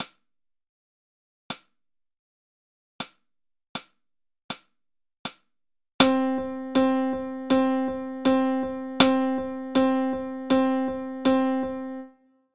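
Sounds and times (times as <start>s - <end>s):
eighth note rhythm example: 6.0s - 12.2s.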